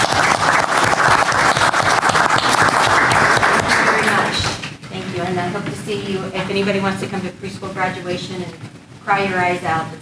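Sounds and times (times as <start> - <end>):
audience applause at a public board meeting: 0.0 - 4.6
speech: 5.5 - 10.0.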